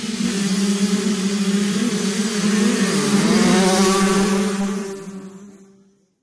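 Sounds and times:
125 cc motocross motorcycles passing fast: 0.2 - 5.6.

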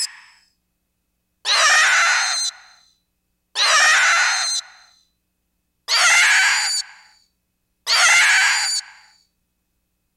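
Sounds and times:
zombie cries: 1.5 - 2.4, 3.6 - 4.5, 5.9 - 6.7, 7.9 - 8.8.

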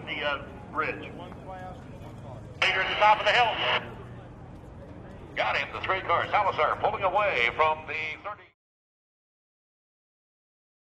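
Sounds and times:
sports car race ambience: 0.0 - 8.5.

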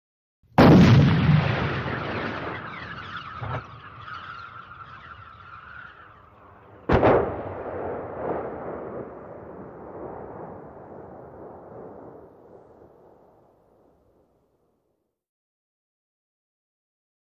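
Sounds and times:
105mm howitzer firing projectile: 0.6 - 4.1, 6.8 - 9.4
downrange explosion: 0.6 - 14.3.

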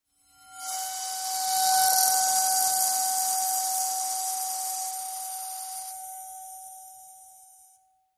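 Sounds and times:
bowed singing bowl: 0.3 - 7.6.

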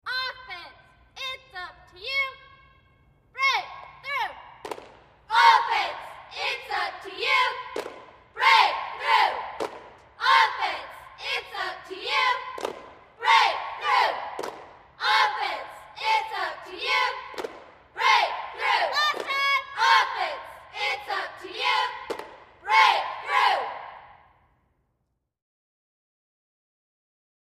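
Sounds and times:
high school cheerleaders chanting a cheer heard from outside: 3.4 - 24.3.

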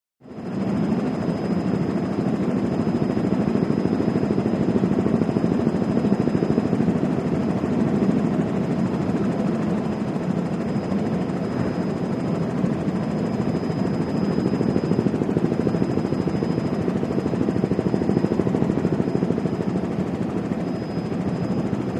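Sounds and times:
Jet Ranger helicopter hovering, in-flight interior: 0.2 - 21.9.

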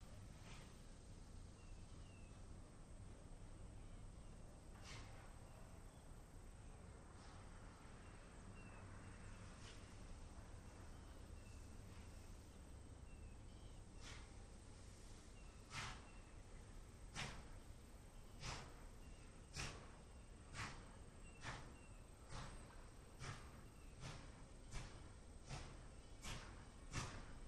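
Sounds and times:
steam train moving slowly: 0.0 - 27.4.

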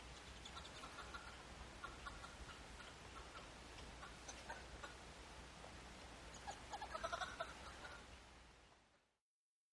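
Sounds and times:
wood hoopoe cackling chorus: 0.1 - 5.0, 6.3 - 8.1.

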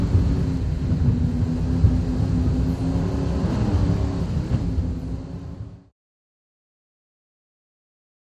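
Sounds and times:
offshore powerboat racing: 0.0 - 5.9.

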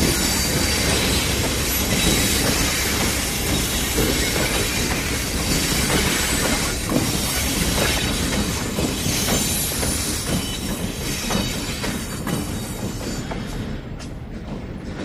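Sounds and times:
diesel locomotive passing slowly: 0.0 - 15.0.

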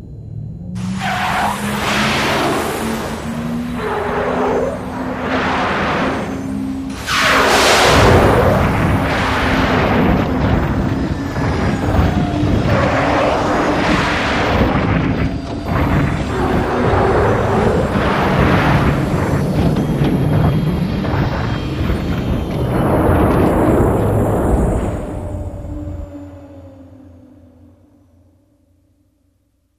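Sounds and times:
space shuttle crash into cargo bay: 0.8 - 26.1.

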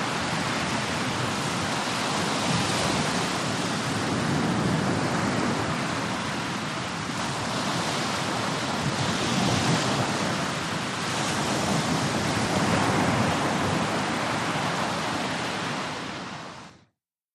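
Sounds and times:
medium surf on a wide beach: 0.0 - 16.9.

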